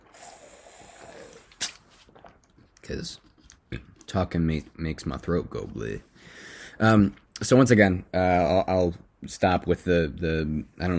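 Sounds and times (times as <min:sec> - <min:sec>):
person sipping a drink: 0:00.0 - 0:04.0
speech: 0:02.9 - 0:06.1, 0:06.8 - 0:10.9.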